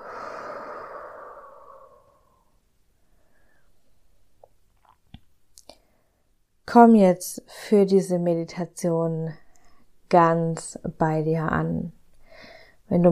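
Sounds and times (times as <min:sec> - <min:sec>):
deep slow breath during a guided meditation: 0:00.0 - 0:03.9, 0:12.2 - 0:12.8
speech: 0:06.7 - 0:09.4, 0:10.1 - 0:12.0, 0:12.9 - 0:13.1.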